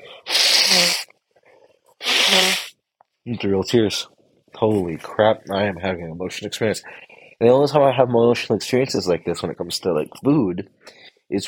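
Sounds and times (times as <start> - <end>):
nose blowing: 0.0 - 1.1, 2.0 - 2.8
speech: 3.2 - 11.4.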